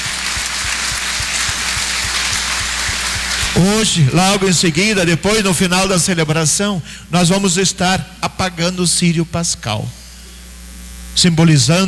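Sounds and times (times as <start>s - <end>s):
audience applause: 0.0s - 4.6s
speech: 3.6s - 10.0s, 11.2s - 11.8s.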